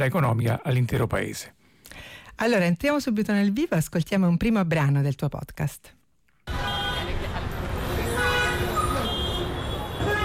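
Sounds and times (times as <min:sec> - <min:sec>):
speech: 0:00.0 - 0:06.0
buses: 0:06.5 - 0:10.2
continuous car horns in Mumbai traffic: 0:06.5 - 0:10.2.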